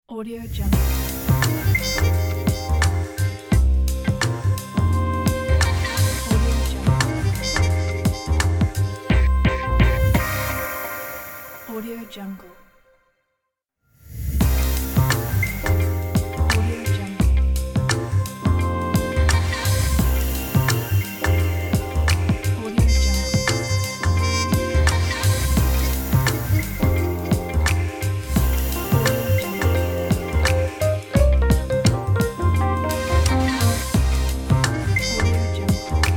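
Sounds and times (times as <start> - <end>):
fashion week logo music: 0.7 - 12.0, 14.4 - 36.1.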